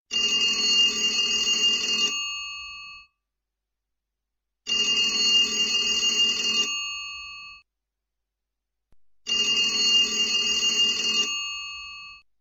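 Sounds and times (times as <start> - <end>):
antique telephone ringtone: 0.1 - 2.2, 4.7 - 6.9, 9.3 - 12.1.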